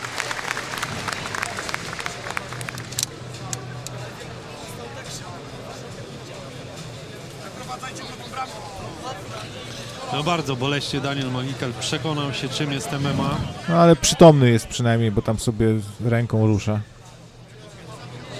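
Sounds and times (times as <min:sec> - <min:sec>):
audience applause for injured fighter: 0:00.0 - 0:03.0
speech: 0:10.1 - 0:16.9.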